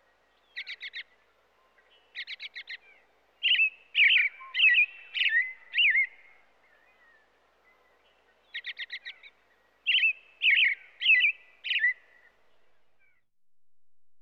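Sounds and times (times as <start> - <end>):
American robin singing in the USA: 1.8 - 12.4.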